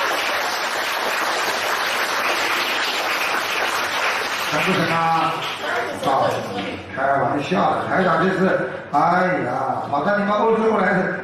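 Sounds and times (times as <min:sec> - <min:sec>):
audience applause: 0:00.0 - 0:06.4
speech: 0:04.5 - 0:11.2.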